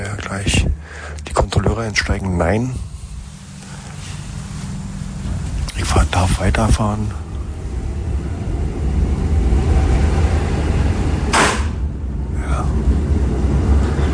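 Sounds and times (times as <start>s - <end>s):
old rail car rumbling: 0.0s - 14.1s
speech: 0.3s - 0.7s, 1.8s - 2.9s, 5.8s - 7.2s
hissing air burst: 2.8s - 5.6s.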